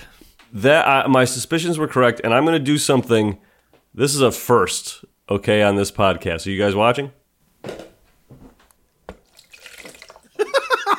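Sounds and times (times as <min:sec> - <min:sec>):
speech: 0:00.5 - 0:07.8
drink poured into a bucket: 0:09.1 - 0:10.4
laughter: 0:10.4 - 0:10.9.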